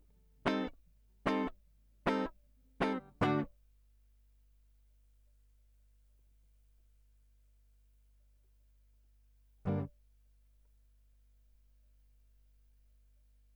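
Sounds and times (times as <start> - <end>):
guitar line: 0.5 - 0.7, 1.3 - 1.5, 2.1 - 3.5, 9.7 - 9.9.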